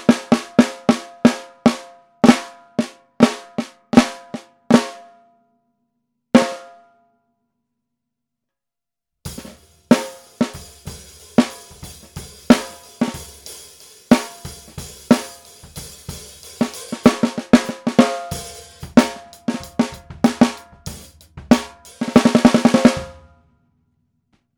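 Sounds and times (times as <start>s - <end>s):
brass 13X35 snare drum: 0.0s - 5.0s, 9.3s - 23.3s.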